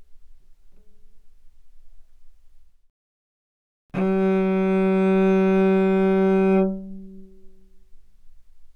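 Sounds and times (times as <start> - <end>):
cello bowed fortissimo on the G string: 4.0 - 8.0.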